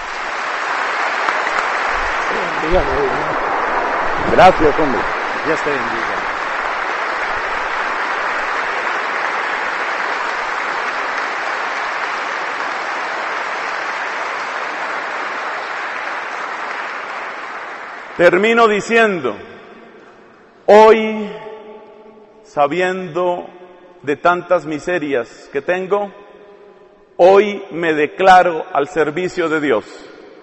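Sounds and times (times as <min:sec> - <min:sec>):
audience applause: 0:00.0 - 0:18.9
speech: 0:02.4 - 0:03.5, 0:04.2 - 0:06.3, 0:18.2 - 0:19.5, 0:20.7 - 0:21.4, 0:22.6 - 0:26.2, 0:27.2 - 0:30.0.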